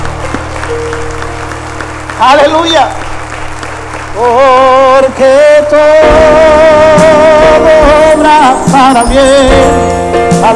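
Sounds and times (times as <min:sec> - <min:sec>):
audience applause: 0:00.0 - 0:06.0
speech: 0:02.2 - 0:03.1, 0:04.2 - 0:10.5.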